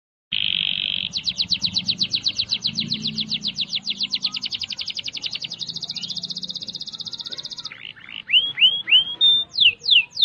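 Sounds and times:
canary singing whistles, rattles and repeated notes: 0.3 - 10.2.

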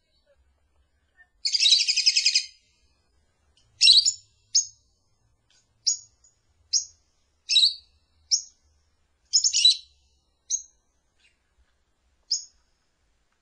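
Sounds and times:
lovebird giving shrill high chirps and trills as a lure call: 1.4 - 2.7, 3.8 - 4.8, 5.8 - 8.6, 9.3 - 11.4, 12.3 - 12.6.

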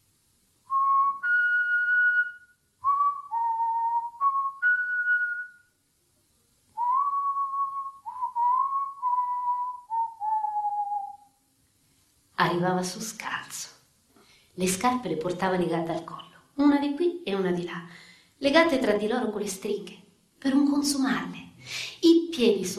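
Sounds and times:
person whistling a short melodic tune: 0.7 - 5.7, 6.8 - 11.4
speech: 12.4 - 13.7, 14.6 - 22.7.

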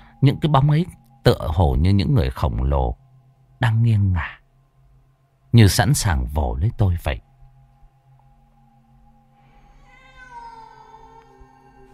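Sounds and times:
speech: 0.2 - 3.0, 3.6 - 4.4, 5.5 - 7.3
cat meowing: 9.7 - 11.8.

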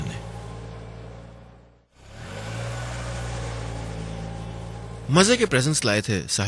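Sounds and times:
car driving off: 0.0 - 6.4
speech: 5.1 - 6.4.

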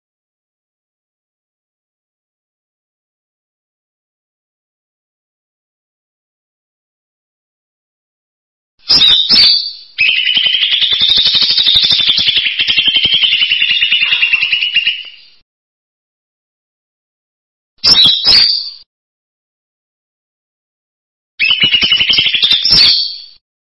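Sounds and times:
bird song: 8.8 - 15.4, 17.8 - 18.9, 21.4 - 23.4.

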